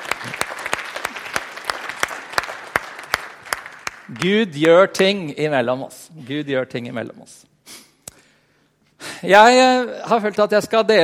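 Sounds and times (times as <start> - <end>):
audience clapping: 0.0 - 5.2
speech: 4.1 - 7.5, 9.2 - 11.0.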